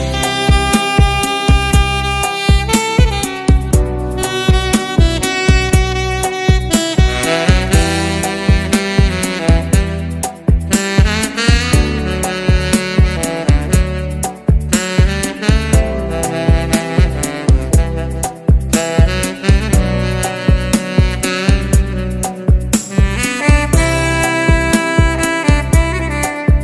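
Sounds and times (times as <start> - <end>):
saxophone: 0.0 - 26.6.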